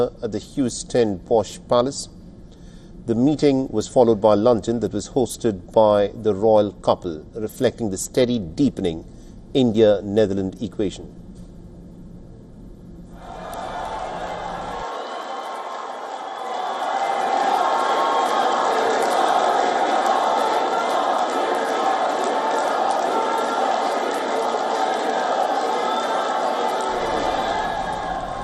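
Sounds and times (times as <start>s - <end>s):
speech: 0.0s - 2.2s, 3.1s - 11.2s
very large Indian diaspora crowd at The Hague cheering for the Indian Prime Minister: 13.2s - 28.4s.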